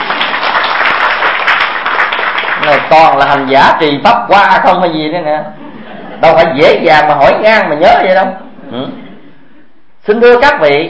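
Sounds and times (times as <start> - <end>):
audience applause at a Buddhist dharma talk: 0.0 - 3.2
speech: 2.7 - 5.6, 6.2 - 9.0, 10.1 - 10.8
laughter: 5.5 - 9.7.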